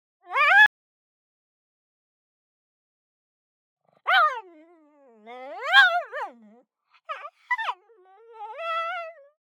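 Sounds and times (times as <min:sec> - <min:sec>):
pug whimpering: 0:04.1 - 0:09.4.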